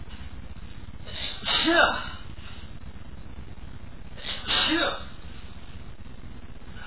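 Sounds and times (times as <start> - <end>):
man sneezing from pepper: 1.1 - 2.2, 4.2 - 5.1.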